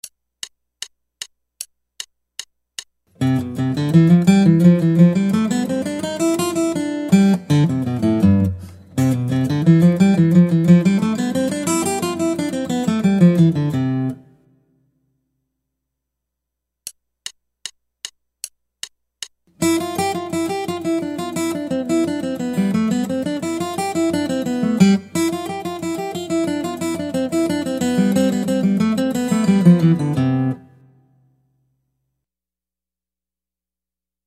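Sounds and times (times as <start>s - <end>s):
guitar: 3.1s - 14.6s, 19.6s - 31.3s.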